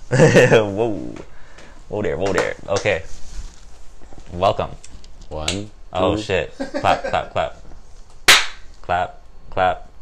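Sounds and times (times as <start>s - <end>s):
speech: 0.1s - 1.3s, 1.9s - 3.2s, 4.3s - 7.6s, 8.9s - 9.9s
single hand clap: 8.3s - 8.7s.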